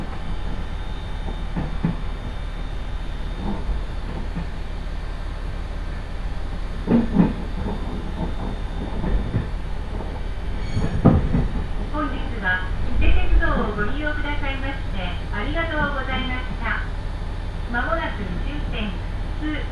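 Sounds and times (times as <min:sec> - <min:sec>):
one-car Ise Railway railbus engine and rail rumble: 0:00.0 - 0:19.7
clunks and knocks inside railbus: 0:06.8 - 0:11.9.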